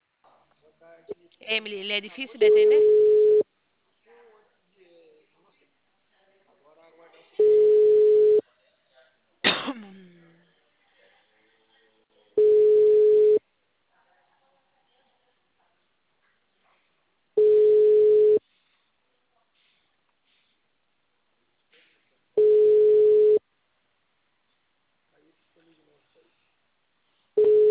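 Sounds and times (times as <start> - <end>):
speech: 0.8 - 3.2
telephone busy signal: 2.5 - 3.4, 7.4 - 8.4, 12.4 - 13.4, 17.4 - 18.4, 22.4 - 23.4, 27.4 - 27.6.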